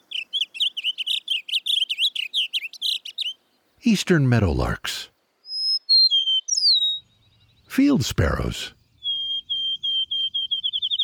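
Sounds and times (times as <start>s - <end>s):
blue grosbeak song in fields like Antietam: 0.0s - 3.4s, 5.5s - 11.0s
speech: 3.8s - 5.1s, 7.8s - 8.8s.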